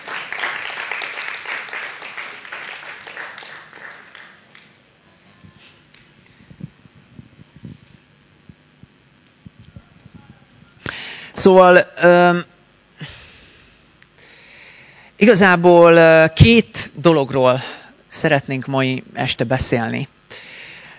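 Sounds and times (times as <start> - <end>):
crowd applause: 0.0 - 6.1
speech: 11.4 - 12.5, 15.2 - 20.4.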